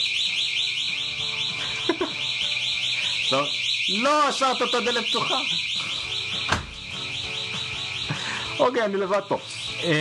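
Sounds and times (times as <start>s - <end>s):
warbling electronic alarm: 0.0s - 10.0s
laughter: 1.6s - 2.2s
speech: 3.3s - 5.7s, 8.6s - 10.0s.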